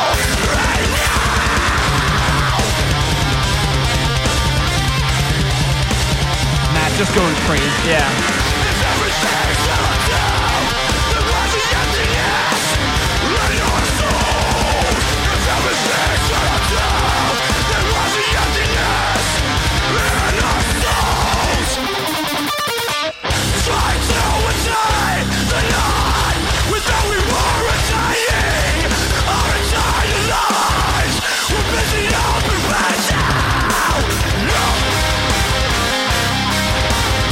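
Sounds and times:
metalcore song recording playing: 0:00.0 - 0:37.3
speech: 0:07.0 - 0:08.4.

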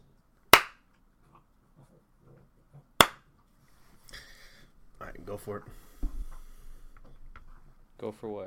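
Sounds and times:
hand clap for audio sync: 0:00.5 - 0:00.8, 0:03.0 - 0:03.2
speech: 0:05.3 - 0:05.9, 0:08.0 - 0:08.4.

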